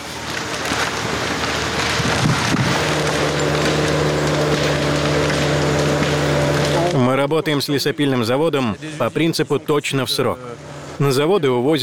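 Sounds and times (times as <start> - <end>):
rustling noise: 0.0 - 6.8
low machine drone: 0.0 - 7.0
tree being felled, cracking and crashing: 0.0 - 8.8
speech: 7.3 - 11.8.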